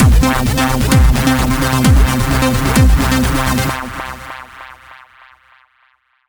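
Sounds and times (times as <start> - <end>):
action boss battle music: 0.0 - 4.7.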